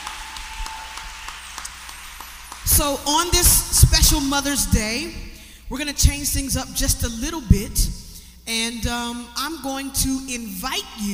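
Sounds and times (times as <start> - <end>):
audience clapping: 0.0 - 3.9
speech: 2.7 - 11.1.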